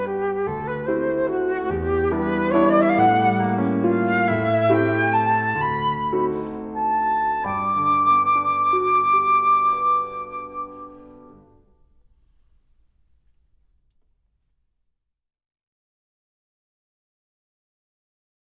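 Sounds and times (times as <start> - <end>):
flute performance: 0.0 - 11.6.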